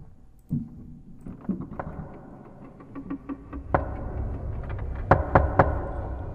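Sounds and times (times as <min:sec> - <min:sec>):
low rumbling background: 0:00.0 - 0:06.3
person knocking sharply on a living-room door: 0:03.3 - 0:06.3.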